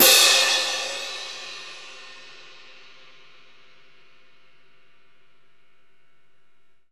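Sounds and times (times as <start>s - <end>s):
orchestral concert cymbal crash: 0.0s - 3.3s.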